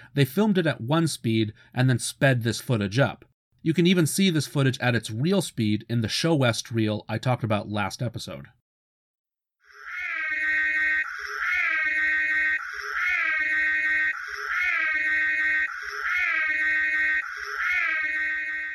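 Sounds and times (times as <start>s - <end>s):
speech: 0.2s - 8.6s
car siren wail from reversed leopard growl: 9.7s - 18.7s.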